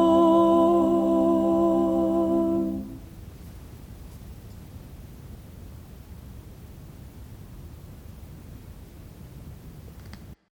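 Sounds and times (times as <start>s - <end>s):
soprano singing: 0.0s - 3.2s.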